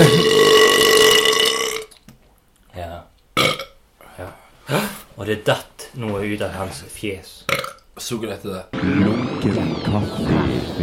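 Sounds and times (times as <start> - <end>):
burp: 0.0 - 1.9, 3.4 - 3.8, 7.5 - 7.8
speech: 5.3 - 10.8.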